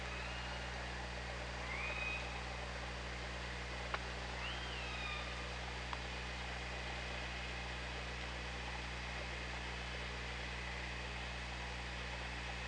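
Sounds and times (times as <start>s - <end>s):
low humming bands: 0.0s - 12.6s
steady hydrophone hiss: 0.0s - 12.6s
killer whale whistles: 1.6s - 2.4s, 4.4s - 5.4s.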